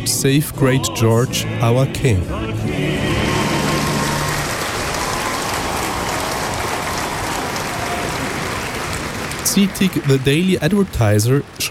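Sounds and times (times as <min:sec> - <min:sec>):
speech: 0:00.1 - 0:03.4, 0:09.6 - 0:11.6
crowd applauding after a hymn: 0:03.0 - 0:11.6.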